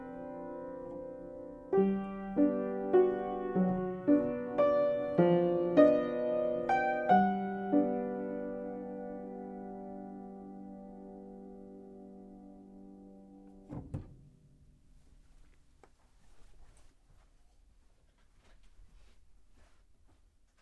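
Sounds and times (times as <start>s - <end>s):
piano improvisation: 0.0s - 13.7s.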